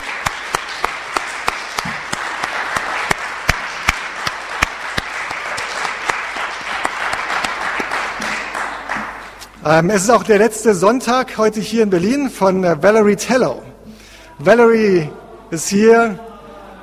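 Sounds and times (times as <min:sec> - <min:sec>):
crowd applauding: 0:00.0 - 0:09.5
speech: 0:09.6 - 0:13.7, 0:14.4 - 0:16.3.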